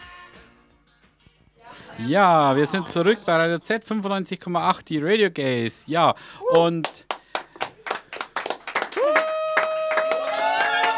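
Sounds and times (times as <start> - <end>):
laughter: 1.6 - 3.6
speech: 2.0 - 7.1
people clapping while celebrating in a kitchen: 6.5 - 10.9.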